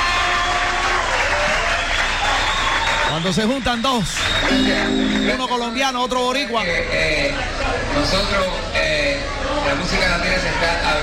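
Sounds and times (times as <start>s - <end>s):
crowd applauding a Latin music orchestra member: 0.0s - 5.8s
speech: 3.2s - 11.0s.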